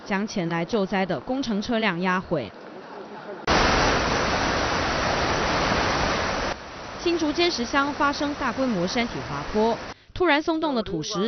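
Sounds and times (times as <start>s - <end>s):
speech: 0.1s - 2.6s, 7.0s - 11.2s
gusts of strong typhoon wind: 3.5s - 9.9s.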